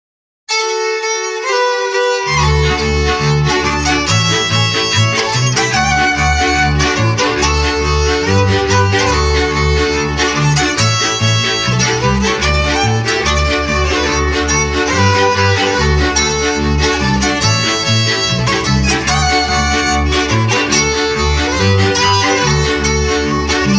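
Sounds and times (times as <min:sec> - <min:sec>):
polka music: 0:00.5 - 0:23.7.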